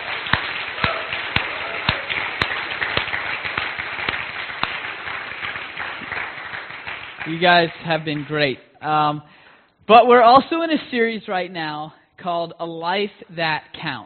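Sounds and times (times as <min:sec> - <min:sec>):
audience applause: 0:00.0 - 0:08.4
speech: 0:07.3 - 0:09.3, 0:09.9 - 0:14.0.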